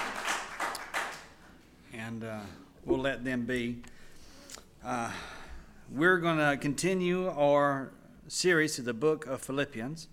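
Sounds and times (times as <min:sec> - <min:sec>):
church congregation applauding for the children: 0:00.0 - 0:01.5
speech: 0:02.1 - 0:03.9, 0:04.8 - 0:10.1.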